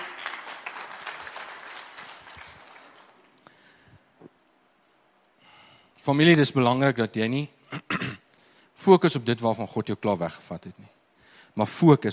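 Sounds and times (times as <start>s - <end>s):
audience applause: 0.0s - 3.4s
speech: 6.0s - 7.6s, 8.8s - 11.0s, 11.6s - 12.1s.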